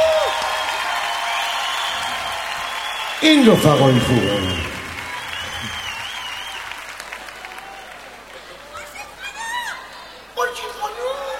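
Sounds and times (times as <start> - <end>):
crowd applauding in honor of the speaker's good friends: 0.0 - 9.0
speech: 3.2 - 4.6.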